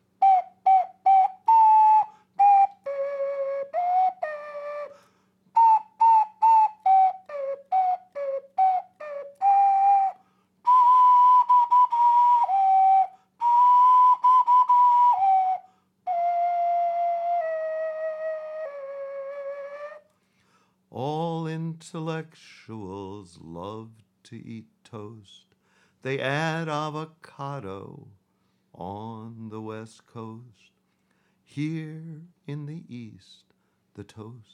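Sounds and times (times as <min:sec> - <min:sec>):
ocarina solo: 0:00.0 - 0:20.1
speech: 0:21.9 - 0:28.2, 0:28.8 - 0:30.7, 0:31.5 - 0:34.5.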